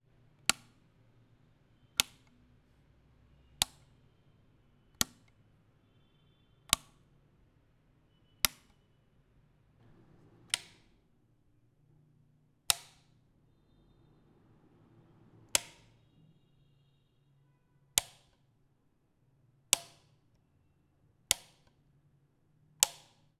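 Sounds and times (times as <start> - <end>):
hotel light switch in Vietnam: 0.4 - 0.8, 2.0 - 2.4, 3.6 - 3.9, 4.9 - 5.4, 6.7 - 7.0, 8.4 - 8.8, 10.5 - 10.9, 12.7 - 13.1, 15.5 - 16.0, 18.0 - 18.4, 19.7 - 20.1, 21.3 - 21.8, 22.8 - 23.3.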